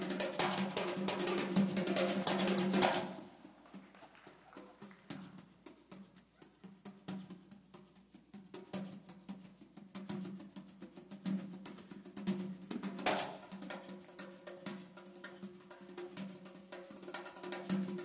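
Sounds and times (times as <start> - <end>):
dhol drum: 0.0 - 18.0.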